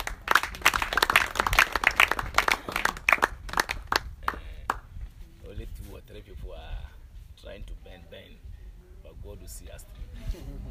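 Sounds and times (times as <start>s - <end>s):
audience clapping: 0.0s - 4.8s.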